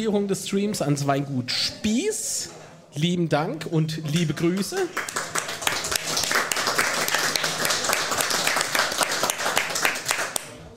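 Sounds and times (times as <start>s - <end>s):
speech: 0.0s - 5.3s
audience clapping at a live event: 4.5s - 10.7s.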